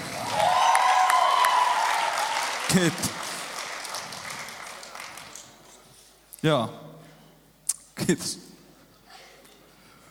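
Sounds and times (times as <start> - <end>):
audience applause: 0.0 - 5.5
speech: 2.7 - 3.2, 6.4 - 6.8, 8.0 - 8.5.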